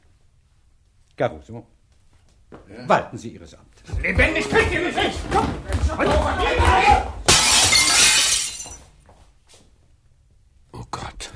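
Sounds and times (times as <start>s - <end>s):
speech: 1.2s - 1.8s, 2.7s - 7.2s
raised voices: 3.8s - 7.2s
window glass shattering as a man crashes out through it: 7.3s - 8.8s.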